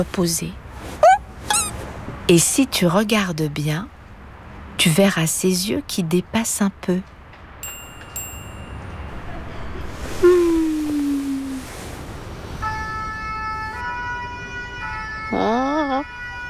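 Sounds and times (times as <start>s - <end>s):
speech: 0.0s - 0.6s, 2.3s - 4.0s, 4.8s - 7.2s
low rumble of traffic: 0.0s - 16.4s
fire engine siren in the street: 12.6s - 16.4s.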